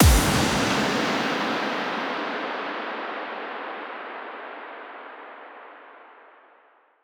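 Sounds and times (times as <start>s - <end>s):
impact: 0.0s - 3.5s.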